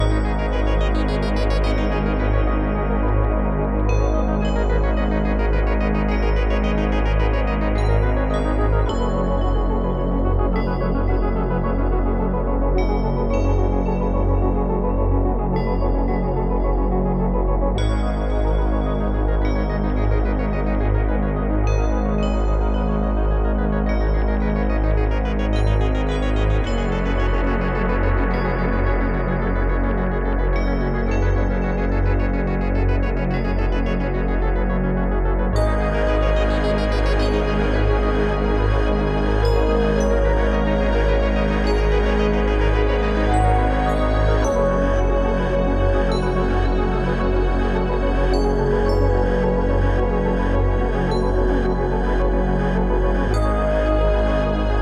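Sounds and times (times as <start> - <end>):
music at 108 bpm: 0.0 - 54.8.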